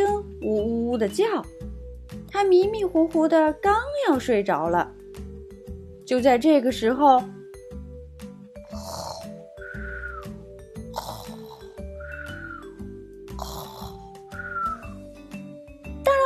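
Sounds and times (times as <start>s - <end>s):
speech: 1.0s - 1.6s, 2.4s - 5.0s, 6.1s - 7.4s
snoring: 8.6s - 10.2s, 10.8s - 12.6s, 13.3s - 14.6s.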